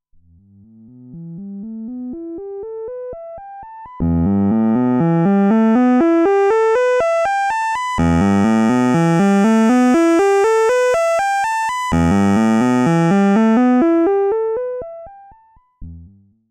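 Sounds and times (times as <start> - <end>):
VCF low-pass filter sweep with zero resonance: 4.0 - 15.2.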